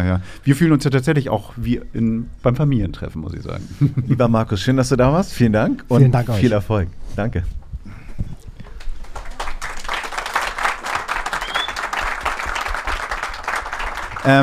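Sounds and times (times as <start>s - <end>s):
speech: 0.0s - 8.0s, 14.2s - 14.4s
laughter: 3.6s - 4.4s
crowd applauding: 8.7s - 14.4s.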